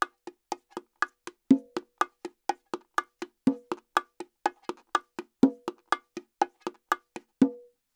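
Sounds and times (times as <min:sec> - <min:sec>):
bongo drums: 0:00.0 - 0:07.7.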